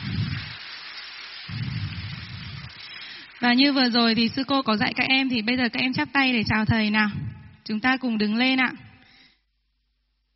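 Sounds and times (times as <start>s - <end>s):
crowd applauding: 0.0s - 4.5s
speech: 3.4s - 8.9s.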